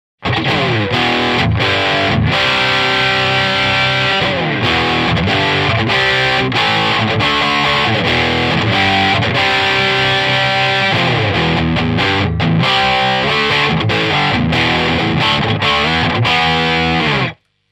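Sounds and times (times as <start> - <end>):
JCA 20 vintage rock music: 0.2 - 17.4.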